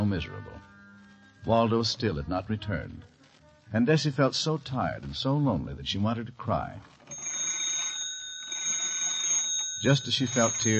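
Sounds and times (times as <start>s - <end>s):
speech: 0.1s - 0.7s, 1.4s - 3.1s, 3.7s - 7.0s, 9.8s - 10.7s
telephone ringing: 7.1s - 10.7s.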